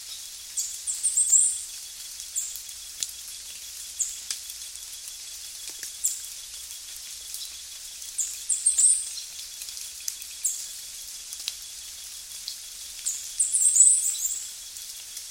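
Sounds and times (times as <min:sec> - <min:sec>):
constant hiss: 0:00.0 - 0:15.2
bird chirping: 0:00.6 - 0:01.6, 0:08.2 - 0:09.2, 0:13.0 - 0:14.5.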